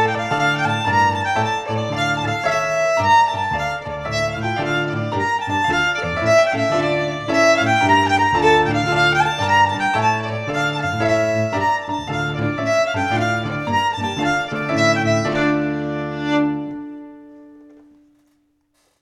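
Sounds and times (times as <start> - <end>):
fiddle: 0.0 - 18.9
piano: 0.0 - 18.9.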